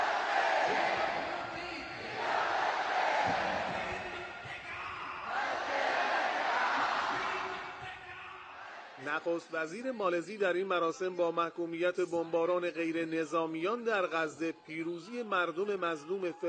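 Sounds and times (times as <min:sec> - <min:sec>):
crowd chanting in unison at a rally: 0:00.0 - 0:09.0
speech: 0:09.2 - 0:16.4.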